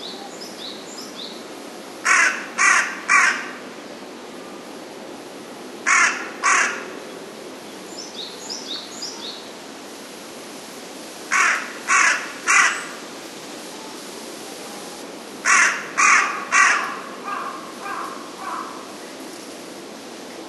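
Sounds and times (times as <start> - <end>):
carrion crow cawing: 2.0 - 3.6, 5.9 - 6.9, 11.3 - 13.0, 15.4 - 18.9.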